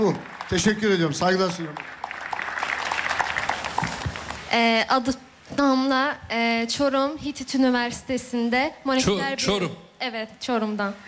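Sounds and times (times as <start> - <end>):
applause from young people and athletes: 0.0 - 4.5
speech: 0.1 - 2.0, 4.5 - 11.0.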